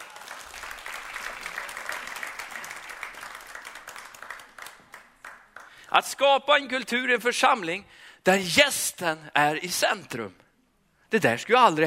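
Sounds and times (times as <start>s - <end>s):
crowd applauding: 0.0s - 5.9s
speech: 5.9s - 10.4s, 11.1s - 11.8s.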